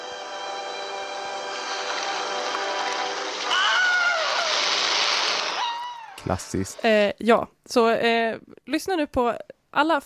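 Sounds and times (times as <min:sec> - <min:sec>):
splashing rushing water: 0:00.8 - 0:05.8
classic stock film scream sound effect: 0:03.3 - 0:06.6
speech: 0:06.2 - 0:10.0.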